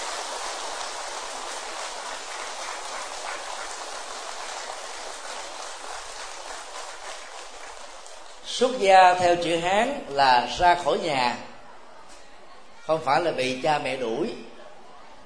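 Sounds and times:
loud audience applause: 0.0s - 8.6s
speech: 8.6s - 11.5s, 12.9s - 14.5s.

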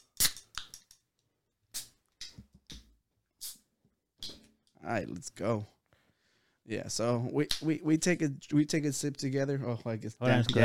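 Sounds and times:
beer cans cracking open: 0.2s - 1.0s
speech: 4.8s - 5.8s, 6.7s - 10.6s.

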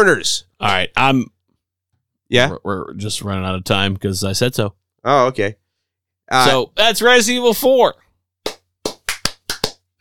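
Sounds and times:
speech: 0.0s - 1.4s, 2.3s - 5.6s, 6.3s - 8.0s
applause sound effect of sharp hand claps: 8.4s - 9.9s.

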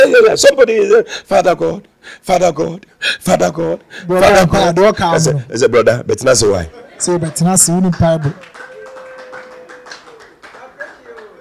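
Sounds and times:
speech: 0.0s - 8.7s
people clapping: 7.3s - 11.3s.

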